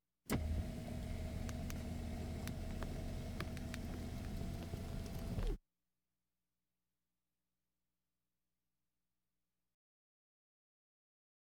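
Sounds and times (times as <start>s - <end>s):
various automobiles: 0.3s - 5.6s.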